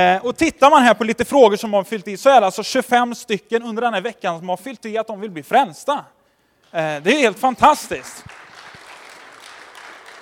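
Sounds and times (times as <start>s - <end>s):
speech: 0.0s - 8.4s
applause: 6.7s - 10.2s.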